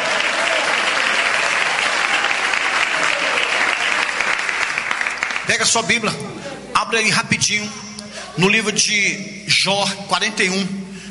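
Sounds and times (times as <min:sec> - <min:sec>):
audience clapping: 0:00.0 - 0:06.1
speech: 0:05.6 - 0:10.8.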